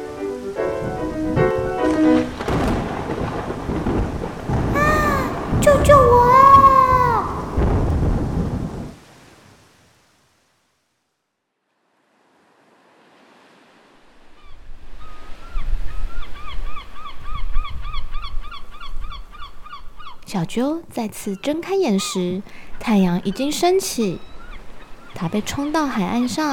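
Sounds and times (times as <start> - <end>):
thunder crack and rumble: 0.8 - 9.0
storm roar: 2.2 - 9.0
speech: 20.4 - 24.3, 25.2 - 26.5.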